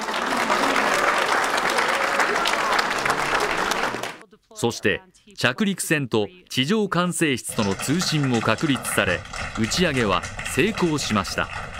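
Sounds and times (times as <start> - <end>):
cheering and applause from watching families: 0.0 - 4.2, 7.5 - 11.7
speech: 4.6 - 11.7.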